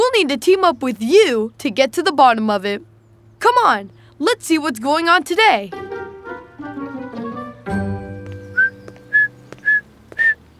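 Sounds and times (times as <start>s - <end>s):
speech: 0.2s - 5.9s
steady tonal music: 5.7s - 9.6s
person whistling imitating bird song: 8.4s - 10.4s.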